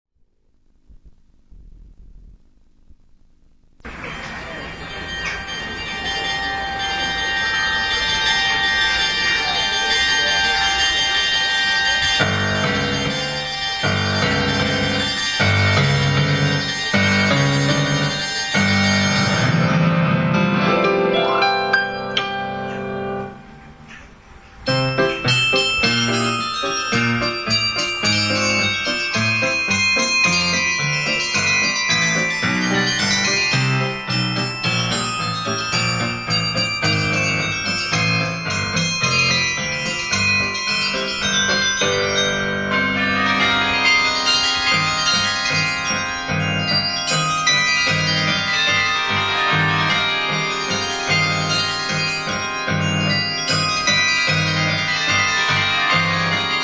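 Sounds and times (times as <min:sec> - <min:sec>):
piano: 0:03.8 - 0:56.6.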